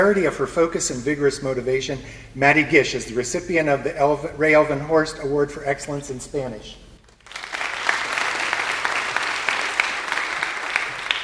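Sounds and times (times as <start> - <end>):
speech: 0.0 - 6.8
audience applause: 7.0 - 11.2.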